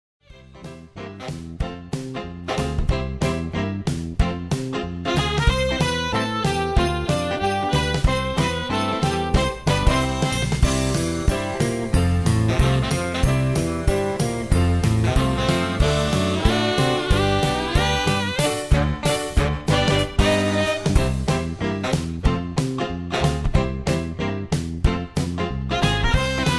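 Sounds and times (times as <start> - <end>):
karaoke instrumental music: 0.3 - 26.5.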